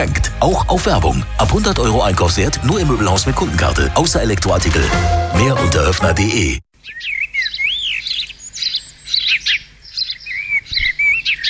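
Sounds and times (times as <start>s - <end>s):
speech: 0.0s - 7.2s
birds chirping: 6.8s - 11.4s.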